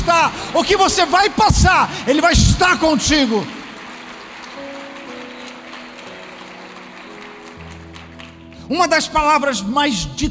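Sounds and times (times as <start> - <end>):
audience applause: 0.0 - 8.6
speech: 0.6 - 3.6, 8.7 - 10.2.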